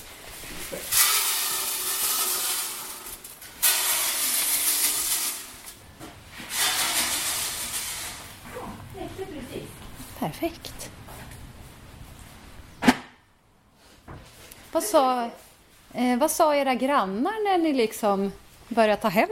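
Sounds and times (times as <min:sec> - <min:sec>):
pellets being poured into troughs: 0:00.1 - 0:05.8, 0:06.5 - 0:08.4
speech: 0:10.2 - 0:10.8, 0:14.8 - 0:19.3.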